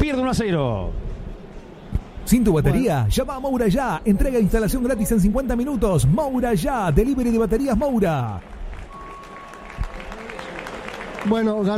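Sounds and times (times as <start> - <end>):
speech: 0.1 - 1.2, 2.3 - 8.6, 11.2 - 11.7
stadium crowd applauding a substituted River football player: 6.8 - 11.7.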